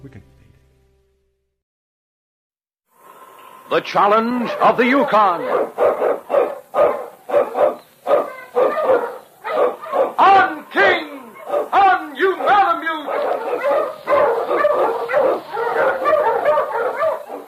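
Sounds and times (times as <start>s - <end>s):
speech: 0.0s - 0.4s, 3.7s - 6.9s
sled dogs barking and yelping: 4.0s - 17.4s.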